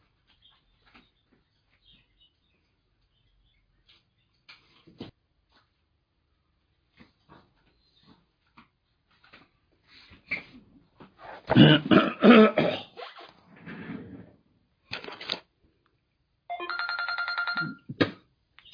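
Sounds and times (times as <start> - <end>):
throat clearing: 11.4 - 13.0
buzzy electronic telephone ringtone: 16.5 - 17.9.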